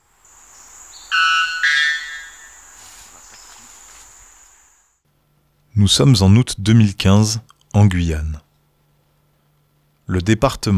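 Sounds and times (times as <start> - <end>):
White Bellbird ringing metallic notes: 0.0 - 4.8
steady high whine: 0.0 - 4.9
speech: 5.8 - 8.4, 10.1 - 10.7.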